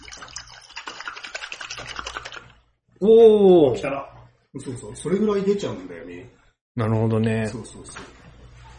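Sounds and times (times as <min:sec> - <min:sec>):
used motocross front fork oil sloshing in a shaken bottle: 0:00.0 - 0:02.7
speech: 0:03.0 - 0:08.2.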